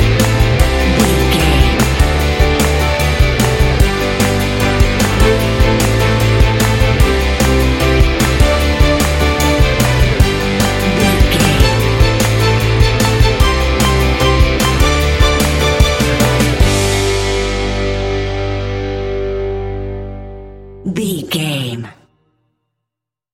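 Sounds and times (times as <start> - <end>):
upbeat corporate pop rock music: 0.0 - 21.8.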